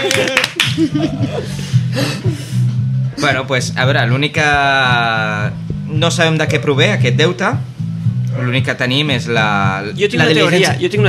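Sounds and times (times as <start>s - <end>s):
canned applause sound effect: 0.0s - 0.8s
laughter: 0.0s - 2.5s
speech: 0.8s - 2.2s, 3.2s - 7.7s, 8.4s - 11.0s.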